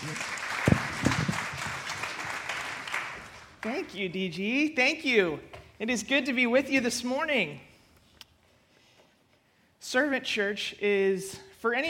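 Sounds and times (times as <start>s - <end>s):
audience applause: 0.0s - 3.8s
speech: 3.6s - 7.7s, 9.8s - 11.8s.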